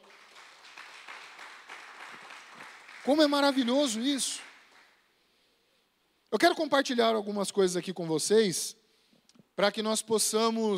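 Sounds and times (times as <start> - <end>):
audience applause: 0.0 - 5.0
speech: 3.1 - 4.5, 6.3 - 8.8, 9.6 - 10.7.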